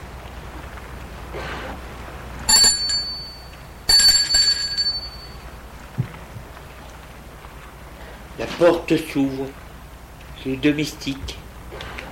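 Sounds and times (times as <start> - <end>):
low hum: 0.0 - 12.0
doorbell ringing: 2.5 - 5.6
speech: 8.5 - 9.6, 10.4 - 11.4.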